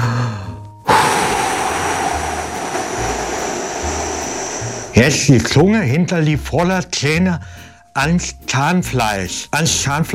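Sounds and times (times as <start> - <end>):
forceful exhaling while lying on the floor: 0.9 - 5.2
speech: 5.0 - 10.1.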